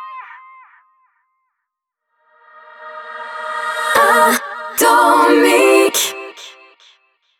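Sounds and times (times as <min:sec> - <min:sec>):
a cappella jingle: 0:02.3 - 0:07.2.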